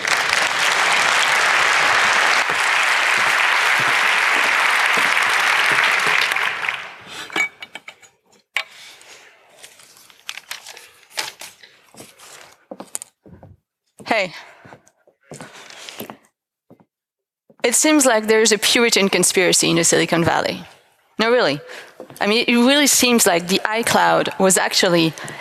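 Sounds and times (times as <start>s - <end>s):
audience applause: 0.0s - 7.3s
speech: 14.2s - 14.4s, 17.7s - 25.3s.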